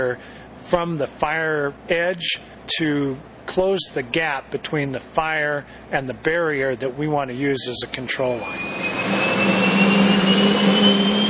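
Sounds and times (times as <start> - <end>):
speech: 0.0 - 9.6
Hercules C-130 transport plane engines roaring: 8.4 - 11.2.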